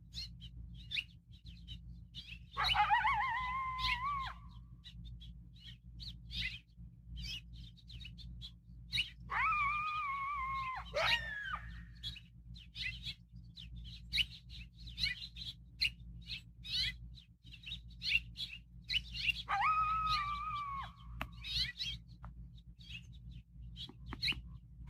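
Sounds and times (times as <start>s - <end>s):
steady low hum: 0.0s - 24.8s
coyotes yipping: 2.2s - 4.7s, 8.9s - 12.2s, 18.9s - 22.1s
coyote sustained rising howls: 2.6s - 4.7s, 9.3s - 12.2s, 19.2s - 21.8s.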